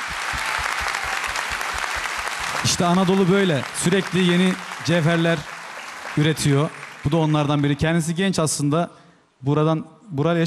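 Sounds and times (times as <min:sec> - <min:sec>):
audience applause for a performer: 0:00.0 - 0:08.1
speech: 0:02.6 - 0:05.5, 0:06.2 - 0:10.4.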